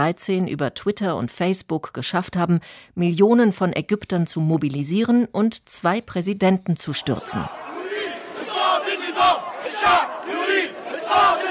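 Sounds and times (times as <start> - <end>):
speech: 0.0 - 8.0
crowd of protesters chanting and shouting in unison: 6.9 - 11.4.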